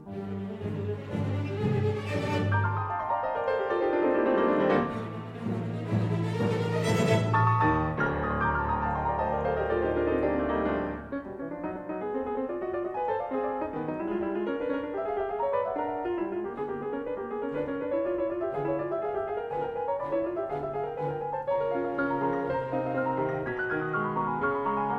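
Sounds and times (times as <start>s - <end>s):
piano and orchestra concerto movement: 0.0s - 24.9s.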